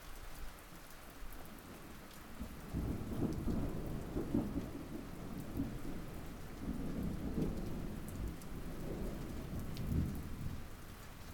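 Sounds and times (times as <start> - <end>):
thunder: 2.7 - 10.7.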